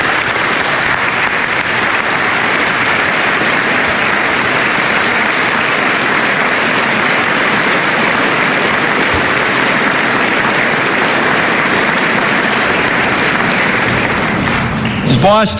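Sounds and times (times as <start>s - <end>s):
audience applause: 0.0s - 15.4s.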